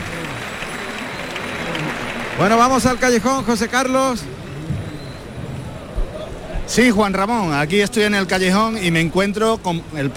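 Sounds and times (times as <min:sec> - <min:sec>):
bullring crowd ovation applause: 0:00.0 - 0:06.6
scattered voices: 0:00.0 - 0:10.1
speech: 0:02.4 - 0:04.4, 0:06.7 - 0:10.1.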